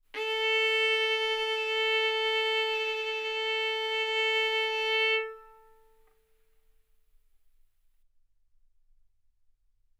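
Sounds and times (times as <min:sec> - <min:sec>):
violin arco on A string: 0:00.2 - 0:06.0.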